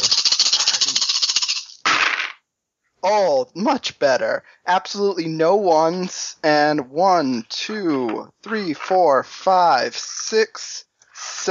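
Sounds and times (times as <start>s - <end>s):
dice being rolled: 0.1s - 2.4s
speech: 3.0s - 11.5s.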